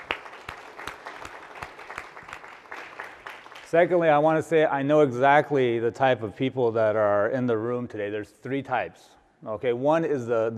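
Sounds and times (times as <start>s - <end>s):
audience applause: 0.0s - 3.9s
speech: 3.7s - 10.5s.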